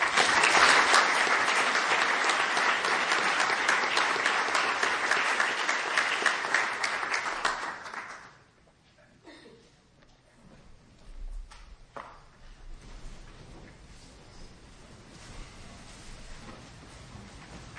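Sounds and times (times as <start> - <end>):
audience applause welcoming the opening plenary speaker at an ASA meeting: 0.0 - 8.4.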